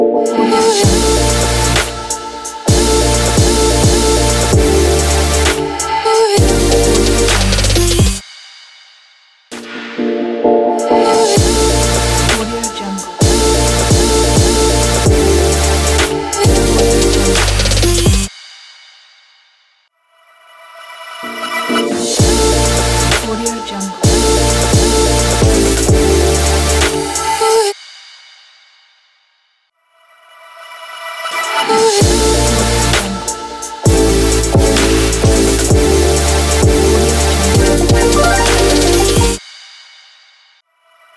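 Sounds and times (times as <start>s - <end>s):
future bass music logo: 0.1s - 8.2s, 10.6s - 18.3s, 21.7s - 27.6s, 31.7s - 39.4s.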